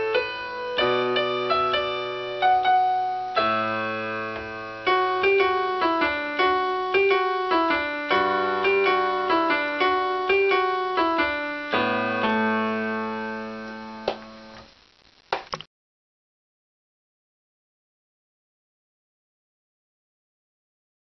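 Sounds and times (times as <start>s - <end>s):
piano cover: 0.0s - 14.7s.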